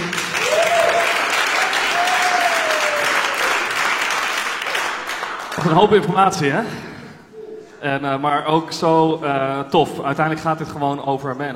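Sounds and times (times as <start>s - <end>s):
audience applause: 0.0s - 6.0s
speech: 5.6s - 6.9s, 7.8s - 11.5s.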